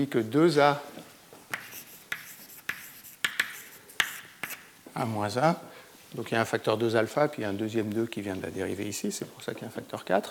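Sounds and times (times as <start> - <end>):
speech: 0.0 - 0.9, 5.0 - 10.2
scratchy writing strokes of a formula during a lecture: 1.4 - 4.7.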